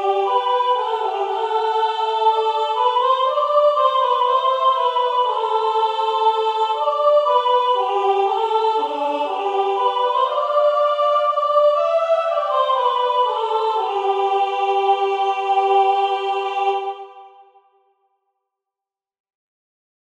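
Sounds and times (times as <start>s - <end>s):
tenor singing a hymn: 0.0s - 17.4s.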